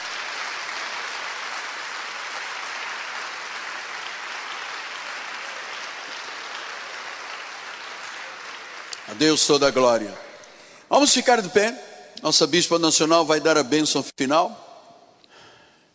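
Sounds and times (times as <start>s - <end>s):
audience applauding: 0.0s - 9.7s
speech: 9.1s - 10.3s, 10.9s - 14.6s.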